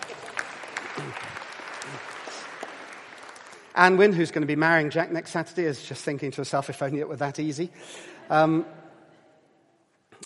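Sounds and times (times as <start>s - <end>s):
audience applause: 0.0s - 4.1s
speech: 1.0s - 2.1s, 3.8s - 8.8s.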